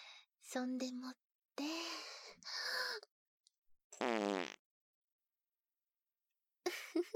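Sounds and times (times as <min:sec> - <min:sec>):
speech: 0:00.5 - 0:03.1
fart: 0:04.0 - 0:04.6.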